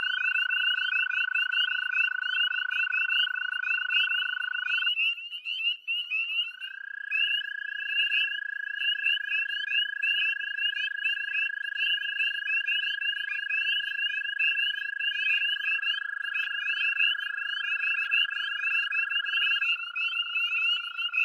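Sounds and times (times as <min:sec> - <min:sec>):
American toads calling: 0:00.0 - 0:21.2
spring peepers calling in chorus: 0:00.0 - 0:21.2.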